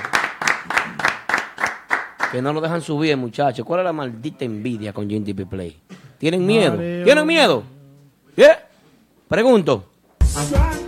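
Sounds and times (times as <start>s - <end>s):
audience clapping: 0.0s - 2.6s
speech: 2.3s - 7.7s, 8.4s - 8.6s, 9.3s - 10.8s.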